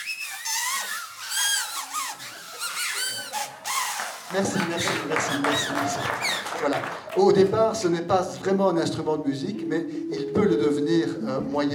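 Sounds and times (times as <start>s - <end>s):
paper and cardboard whistles being blown: 0.0s - 6.5s
speech: 4.3s - 11.7s.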